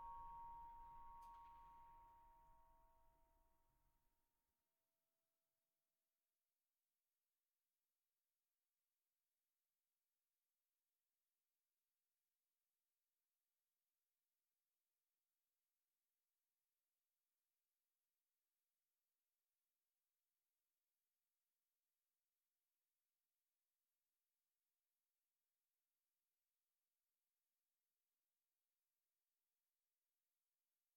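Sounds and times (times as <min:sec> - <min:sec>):
bowed glockenspiel combat loop: 0:00.0 - 0:02.8.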